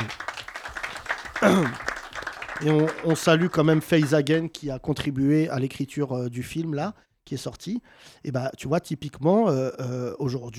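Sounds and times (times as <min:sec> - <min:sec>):
audience applause: 0:00.0 - 0:04.4
speech: 0:01.4 - 0:01.8, 0:02.6 - 0:10.5.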